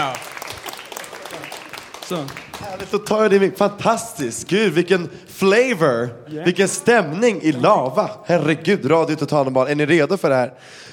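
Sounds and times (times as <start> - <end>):
audience applause: 0.0 - 3.4
speech: 2.1 - 10.9.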